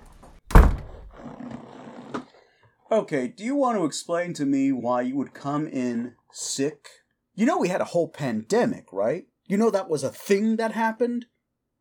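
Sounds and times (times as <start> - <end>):
door being shut with a heavy thunk: 0.0 - 1.2
speech: 2.9 - 11.3.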